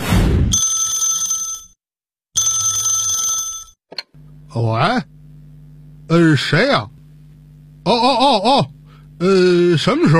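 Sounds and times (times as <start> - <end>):
telephone ringing: 0.6 - 1.8, 2.4 - 3.8
speech: 4.5 - 5.1, 6.1 - 7.0, 7.9 - 10.1.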